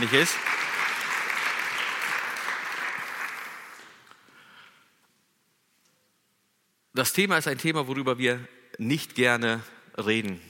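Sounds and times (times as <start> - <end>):
speech: 0.0 - 0.6, 7.0 - 10.4
audience applause: 0.0 - 4.1.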